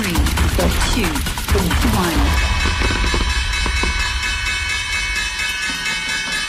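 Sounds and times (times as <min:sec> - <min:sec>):
stock exchange opening bell ringing: 0:00.0 - 0:06.4.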